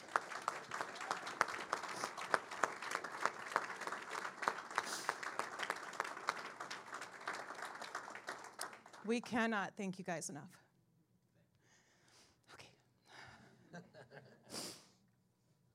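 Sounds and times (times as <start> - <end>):
audience applause: 0.0 - 9.1
speech: 9.1 - 10.6.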